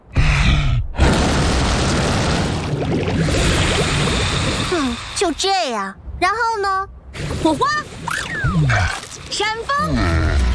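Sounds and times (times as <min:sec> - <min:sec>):
dragon breathing fire: 0:00.1 - 0:05.1
speech: 0:05.2 - 0:07.9, 0:08.5 - 0:10.5.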